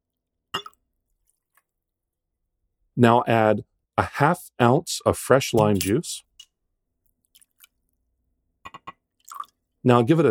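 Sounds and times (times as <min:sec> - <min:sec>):
speech: 0:03.0 - 0:06.3, 0:09.8 - 0:10.2
Dutch gin pouring over ice in a rocks glass: 0:09.2 - 0:09.6.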